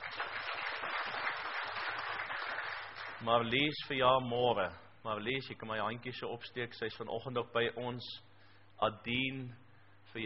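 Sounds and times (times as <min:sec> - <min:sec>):
audience applause: 0:00.0 - 0:03.2
speech: 0:03.2 - 0:10.2.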